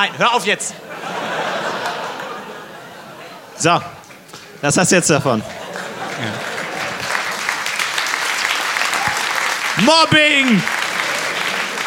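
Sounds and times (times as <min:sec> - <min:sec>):
speech: 0:00.0 - 0:01.4, 0:03.6 - 0:04.0, 0:04.6 - 0:06.5, 0:09.8 - 0:10.8
laughter: 0:00.0 - 0:08.0, 0:08.9 - 0:11.8
audience applause: 0:01.3 - 0:02.6, 0:05.4 - 0:11.8.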